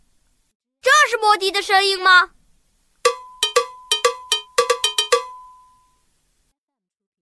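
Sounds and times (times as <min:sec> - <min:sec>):
speech: 0:01.2 - 0:02.4
cowbell ringing: 0:03.1 - 0:06.0.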